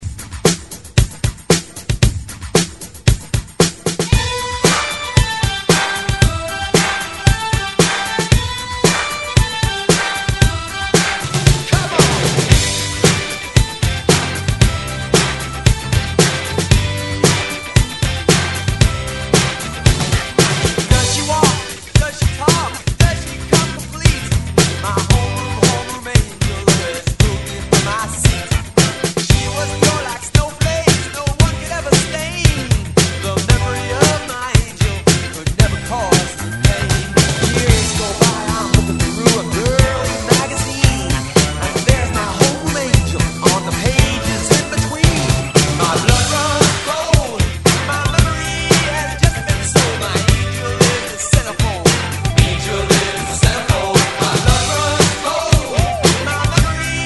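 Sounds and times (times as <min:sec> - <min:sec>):
drum loop: 0:00.0 - 0:57.0.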